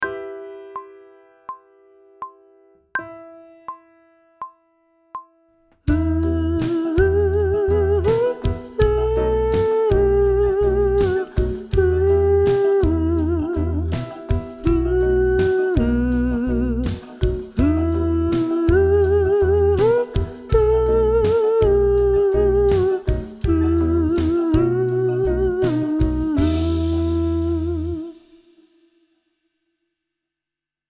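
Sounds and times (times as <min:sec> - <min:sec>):
person sight singing pop vocals: 0:05.9 - 0:28.4.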